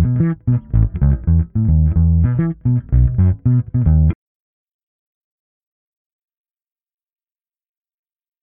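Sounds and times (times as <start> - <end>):
Senegal Afro Beats music: 0.0 - 4.2.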